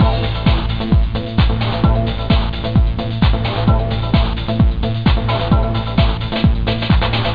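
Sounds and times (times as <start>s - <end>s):
trance mix: 0.0s - 7.3s.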